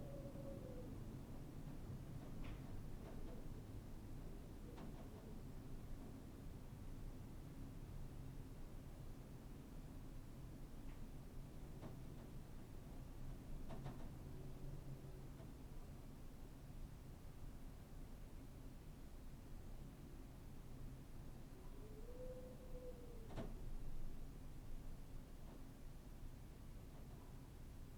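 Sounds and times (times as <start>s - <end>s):
wind: 0.0s - 27.9s.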